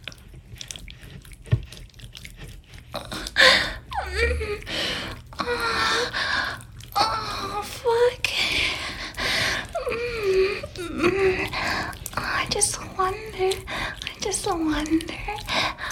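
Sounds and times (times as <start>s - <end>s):
wet genital sounds during sexual activity: 0.0s - 15.9s
breathy gasping vocalisations: 3.0s - 14.1s, 14.9s - 15.9s.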